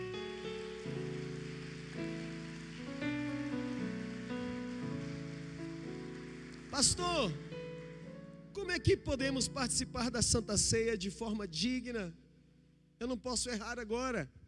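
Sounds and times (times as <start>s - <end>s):
audience clapping: 0.0s - 8.2s
sustained keyboard chords: 0.0s - 11.9s
speech: 6.8s - 7.5s, 8.6s - 12.2s, 13.0s - 14.4s.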